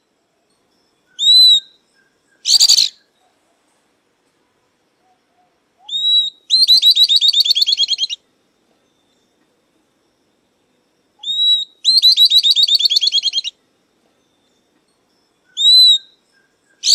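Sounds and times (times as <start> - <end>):
southern beardless-tyrannulet song: 1.1 - 3.1, 5.8 - 8.2, 11.2 - 13.6, 15.5 - 16.9.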